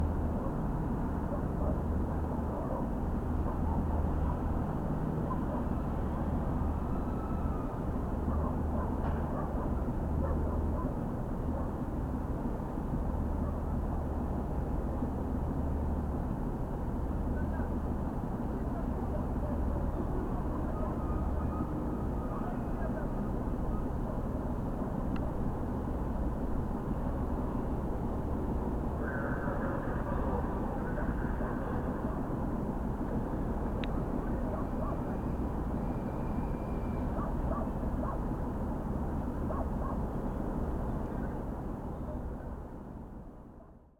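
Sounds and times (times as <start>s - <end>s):
prop planes overhead: 0.0s - 43.3s
wind at a distant cargo port: 0.0s - 43.9s
distant dogs: 1.2s - 5.9s, 8.2s - 11.8s, 29.0s - 32.2s, 34.4s - 35.4s, 36.9s - 38.4s, 39.3s - 40.2s, 42.0s - 42.5s.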